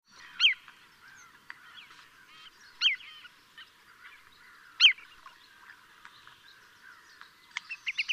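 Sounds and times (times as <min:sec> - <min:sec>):
marsh sandpiper piping calls: 0:00.1 - 0:05.8, 0:07.7 - 0:08.1.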